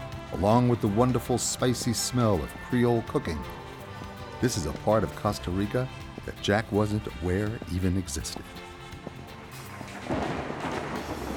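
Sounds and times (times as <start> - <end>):
speech: 0.3 - 3.6, 4.4 - 8.6
rumble of thunder: 10.0 - 11.3.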